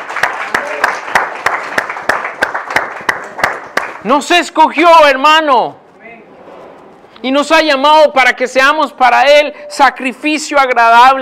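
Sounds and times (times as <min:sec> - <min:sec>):
audience applause: 0:00.0 - 0:04.0
speech: 0:04.0 - 0:05.8, 0:07.2 - 0:11.2.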